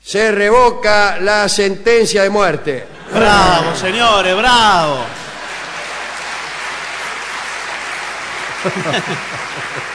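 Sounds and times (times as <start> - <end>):
speech: 0.1 - 5.2, 8.6 - 9.9
laughter: 2.8 - 6.4, 8.2 - 9.9
theatre audience applause and ovation: 3.9 - 9.9.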